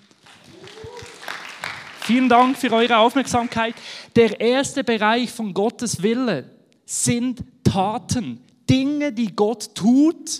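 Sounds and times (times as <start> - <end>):
audience applause: 0.0 - 4.0
speech: 2.1 - 10.3.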